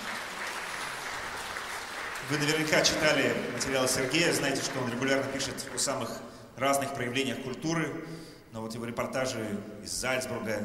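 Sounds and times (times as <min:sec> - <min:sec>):
audience applause: 0:00.0 - 0:05.9
speech: 0:02.2 - 0:10.6.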